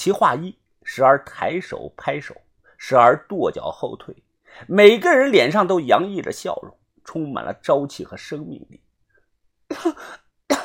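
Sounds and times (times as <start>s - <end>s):
speech: 0.0s - 8.8s, 9.7s - 10.2s
harsh rough coughing: 9.7s - 10.6s.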